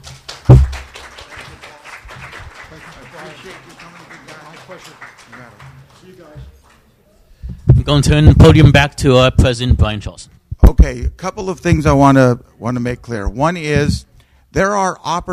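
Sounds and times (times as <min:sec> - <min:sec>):
audience applause: 0:00.0 - 0:06.9
speech: 0:04.7 - 0:06.6, 0:07.9 - 0:15.3.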